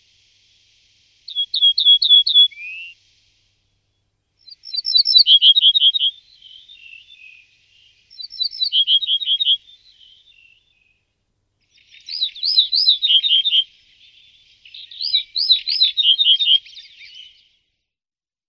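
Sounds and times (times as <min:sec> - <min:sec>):
ortolan bunting singing: 0:01.3 - 0:03.0, 0:04.4 - 0:17.5.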